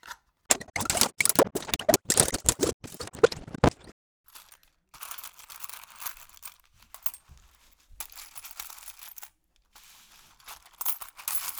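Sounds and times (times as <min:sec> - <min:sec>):
foley sounds: 0:00.5 - 0:03.9.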